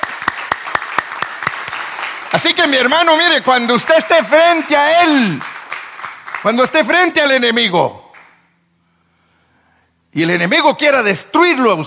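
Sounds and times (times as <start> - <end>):
audience clapping loudly: 0.0 - 7.1, 8.1 - 8.4
speech: 2.3 - 5.5, 6.4 - 8.0, 10.1 - 11.8.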